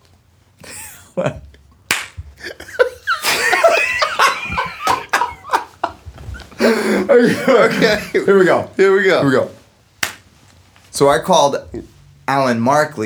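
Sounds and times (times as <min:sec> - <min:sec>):
laughter: 0:00.6 - 0:01.6, 0:02.3 - 0:08.6
speech: 0:01.2 - 0:01.5, 0:06.7 - 0:09.6, 0:11.0 - 0:13.0
hand clap marking an edit: 0:01.9 - 0:02.5, 0:03.3 - 0:05.9, 0:10.0 - 0:10.4.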